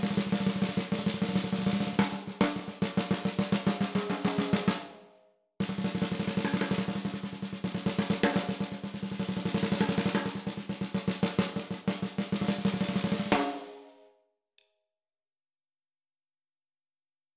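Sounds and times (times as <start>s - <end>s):
Odery imbuia 13x7 snare drum: 0.0s - 5.0s, 5.6s - 14.0s.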